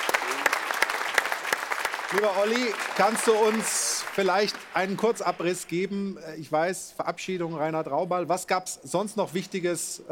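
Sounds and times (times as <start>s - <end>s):
crowd applauding: 0.0s - 5.6s
speech: 2.1s - 10.1s.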